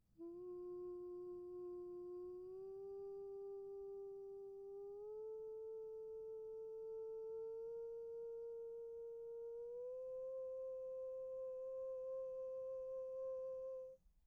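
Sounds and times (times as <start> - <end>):
person humming: 0.2 - 14.0.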